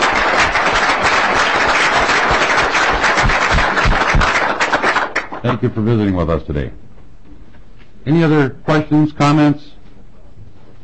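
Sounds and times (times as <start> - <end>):
audience applause: 0.0 - 5.6
speech: 5.5 - 6.9, 8.0 - 9.8.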